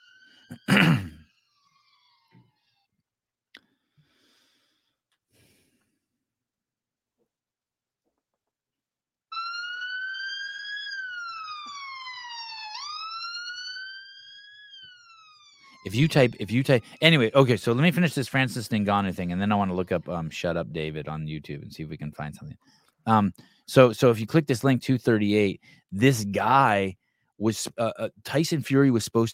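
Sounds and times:
police siren sound effect set off from a button: 0.0s - 0.7s, 9.3s - 21.2s
speech: 15.8s - 29.3s.

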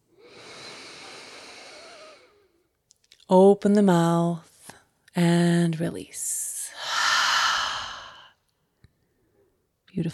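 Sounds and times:
deep inhale through the nose during a guided meditation: 0.2s - 2.5s, 6.8s - 8.4s
speech: 3.3s - 4.5s, 5.2s - 6.4s, 10.0s - 10.1s.

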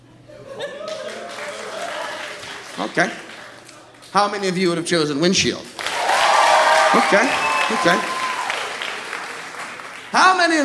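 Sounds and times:
laughter: 0.3s - 2.4s
audience applause: 0.8s - 4.1s, 5.8s - 10.4s
speech: 2.8s - 3.3s, 4.1s - 5.7s, 6.9s - 8.1s, 10.1s - 10.6s.

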